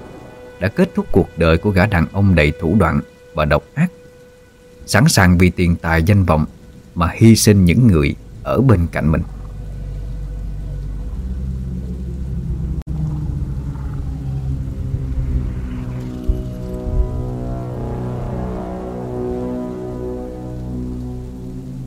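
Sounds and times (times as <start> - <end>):
heavy rain pouring down: 0.0 - 21.8
speech: 0.6 - 4.0, 4.8 - 9.4
deep low rumble: 8.2 - 21.8.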